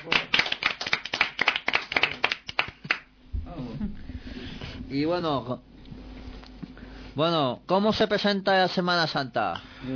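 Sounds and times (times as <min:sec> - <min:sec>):
audience applause: 0:00.0 - 0:03.0
speech: 0:04.9 - 0:05.7, 0:07.2 - 0:09.9.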